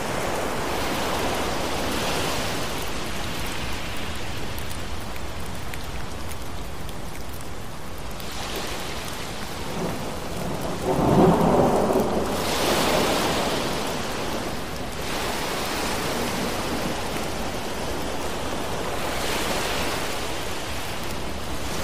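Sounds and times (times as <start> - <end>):
ocean waves: 0.0 - 21.8
thunderstorm rain: 0.0 - 21.8
thunder rumbling: 9.6 - 15.0.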